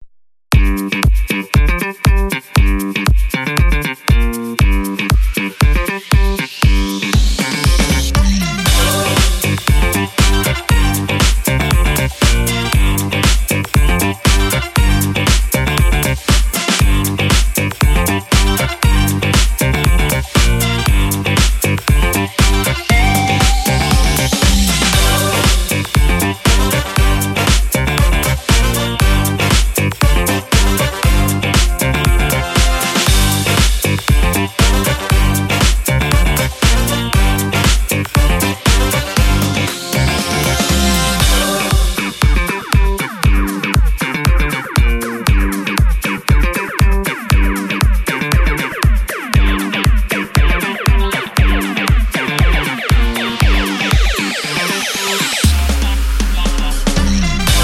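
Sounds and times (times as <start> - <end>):
upbeat funk music: 0.5 - 57.6.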